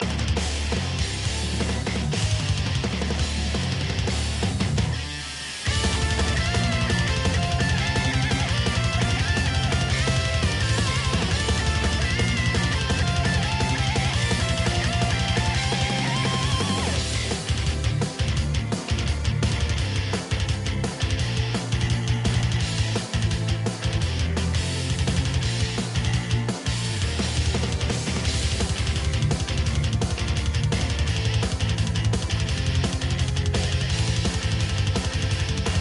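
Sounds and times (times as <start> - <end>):
metal instrumental music: 0.0 - 35.8.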